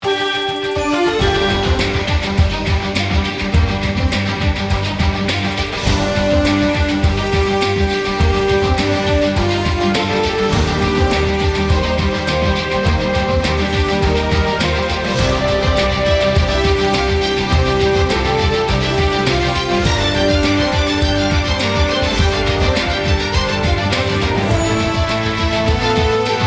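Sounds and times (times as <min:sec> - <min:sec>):
news music theme demo: 0:00.0 - 0:26.4.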